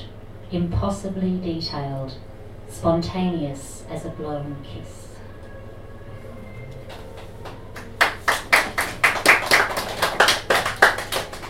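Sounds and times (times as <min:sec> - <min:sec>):
speech: 0:00.5 - 0:05.1
small audience applauding after a poem: 0:06.8 - 0:11.4.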